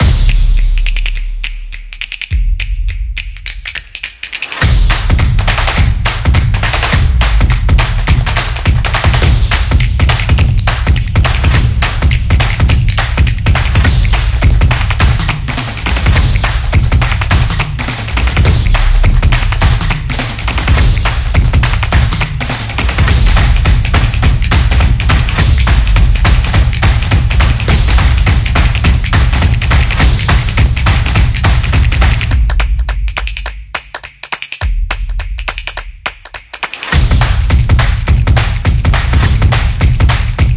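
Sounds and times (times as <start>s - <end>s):
percussion: 0.0s - 40.5s.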